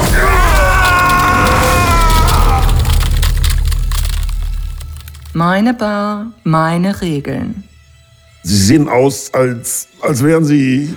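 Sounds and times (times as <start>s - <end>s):
crackling lightning bolts from hands: 0.0s - 8.5s
rumble: 0.0s - 8.6s
speech: 5.4s - 7.7s, 8.4s - 10.9s.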